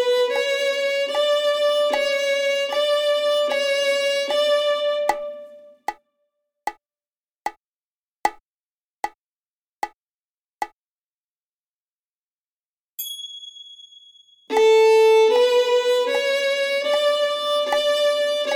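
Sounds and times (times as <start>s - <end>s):
violin imitation playing on the A string: 0.0s - 5.9s, 14.5s - 18.5s.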